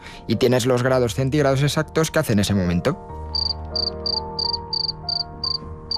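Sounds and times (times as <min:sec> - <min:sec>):
speech: 0:00.3 - 0:03.2
cricket chirping: 0:03.4 - 0:05.9.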